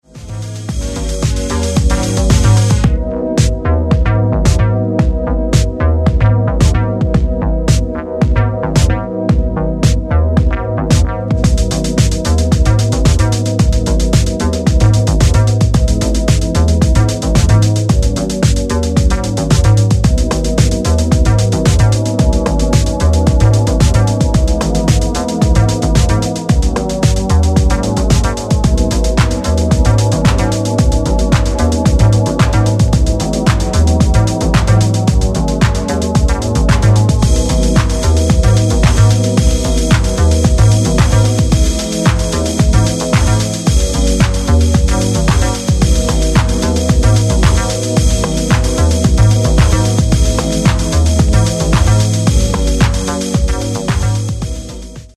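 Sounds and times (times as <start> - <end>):
instrumental music: 0.0 - 55.1.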